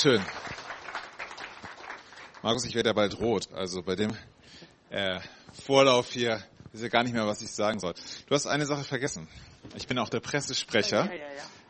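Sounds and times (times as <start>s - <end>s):
speech: 0.0s - 0.5s, 2.4s - 11.6s
warm applause: 0.0s - 2.8s.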